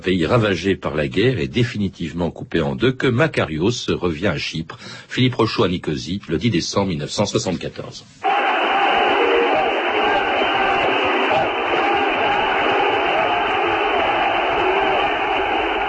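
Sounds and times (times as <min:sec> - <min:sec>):
speech: 0:00.0 - 0:08.3
crowd of Greek Cypriots cheering Archbishop Makarios's return in Nicosia: 0:08.2 - 0:15.8.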